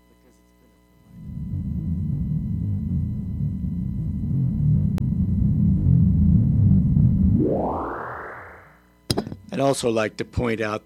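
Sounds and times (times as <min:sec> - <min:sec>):
Prophet 600 synthesizer buzzing drone with presets turned off: 0:01.0 - 0:08.8
speech: 0:09.6 - 0:10.8.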